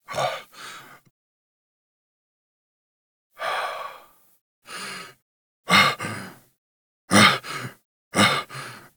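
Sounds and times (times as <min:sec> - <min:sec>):
breathing: 0:00.4 - 0:01.1, 0:03.4 - 0:05.2, 0:05.8 - 0:06.5, 0:07.4 - 0:08.9.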